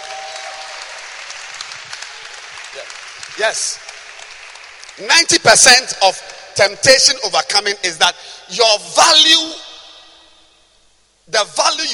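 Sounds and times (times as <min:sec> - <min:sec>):
audience clapping hands: 0:00.0 - 0:06.4
speech: 0:02.8 - 0:03.9, 0:05.0 - 0:09.6, 0:11.3 - 0:11.9.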